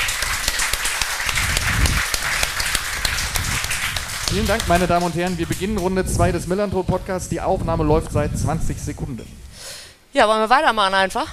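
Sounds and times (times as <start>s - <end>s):
crowd applauding: 0.0s - 6.7s
speech: 4.3s - 9.4s, 10.1s - 11.3s.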